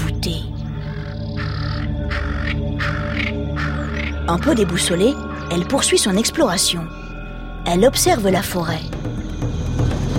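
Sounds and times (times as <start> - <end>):
steady low droning background: 0.0 - 10.1
troop of monkeys giving alarm calls: 0.7 - 4.4
speech: 4.3 - 7.0, 7.6 - 9.0.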